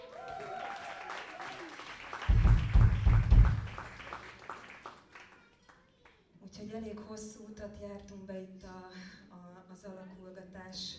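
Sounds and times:
audience applause: 0.0 - 5.5
speech: 6.8 - 9.2, 9.8 - 10.9.

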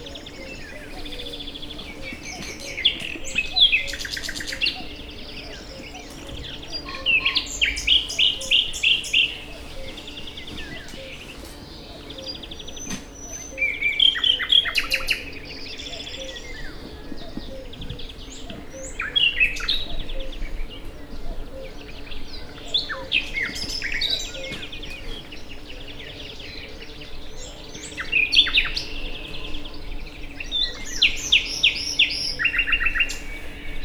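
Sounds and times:
rustling to the right at a railway station: 0.0 - 13.4, 15.5 - 20.0
birds at a railway station: 0.0 - 33.8.

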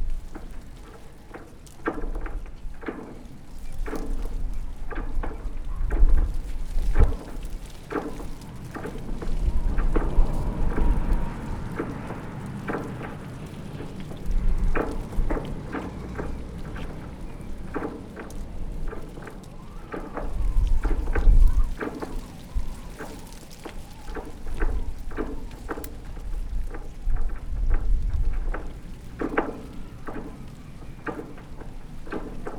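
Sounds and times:
wind whistling through a tree at a reef on Lanzarote: 0.0 - 32.5.

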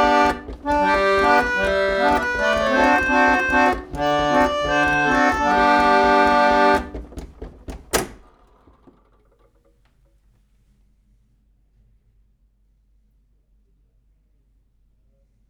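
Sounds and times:
1890 USA organette playing: 0.0 - 8.2.

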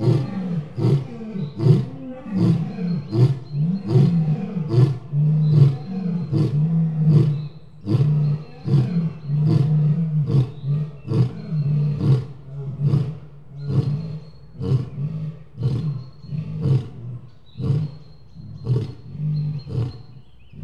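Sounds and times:
lion roaring: 0.0 - 20.6.

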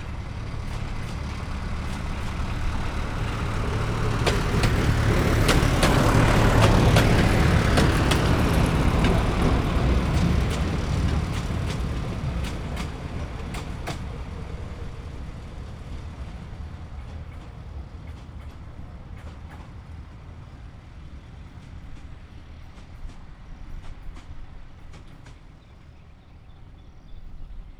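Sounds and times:
narrow-gauge railway train passing right to left at the outer terminus, Hortobágy fish ponds: 0.0 - 27.7.

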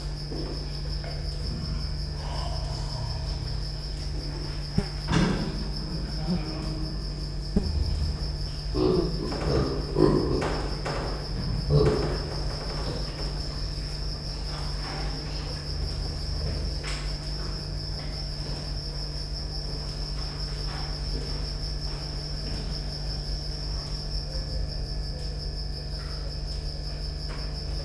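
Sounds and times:
cricket trilling: 0.0 - 27.8
low electrical hum: 0.0 - 27.8.

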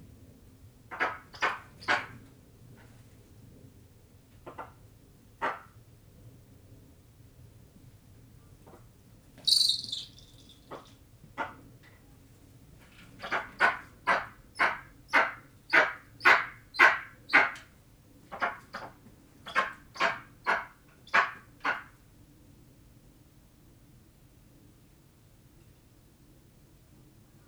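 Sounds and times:
eastern imperial eagles calling in nature at Gores farm: 9.5 - 11.6, 13.2 - 17.6, 19.5 - 21.9.

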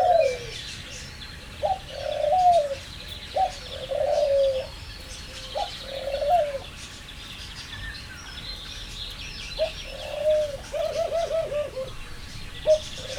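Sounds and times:
laughing dove calling at a zoo: 0.0 - 13.1.

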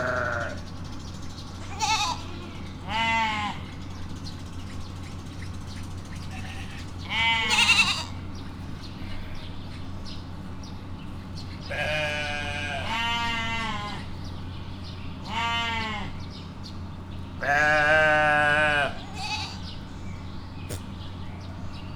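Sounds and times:
goat kid bleating at Miskolc zoo: 0.0 - 0.6, 1.6 - 3.7, 6.3 - 8.3, 11.7 - 14.1, 15.3 - 16.2, 17.4 - 19.8.

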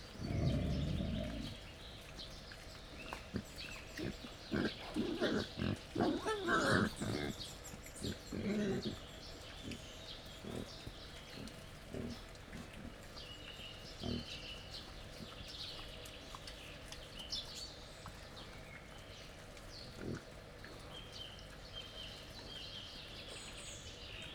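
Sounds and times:
captive wild boar grunting while feeding: 0.1 - 1.8, 2.9 - 13.1, 13.9 - 14.6, 19.8 - 20.9.

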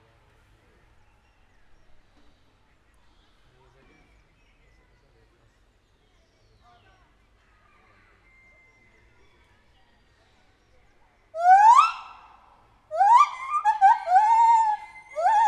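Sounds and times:
captive white-handed gibbon hooting in a zoo: 11.4 - 15.4.

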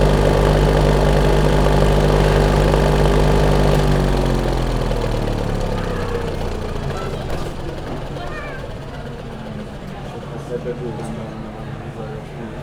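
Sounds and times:
cinema film projector starting and stopping without film: 0.0 - 8.2.

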